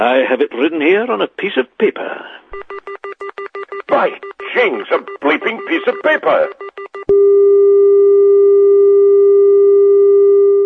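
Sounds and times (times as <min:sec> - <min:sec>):
speech: 0:00.0 - 0:02.8, 0:03.9 - 0:07.7
clicks and blips: 0:02.6 - 0:07.2
mid-pitched telephone line tone: 0:02.6 - 0:10.6.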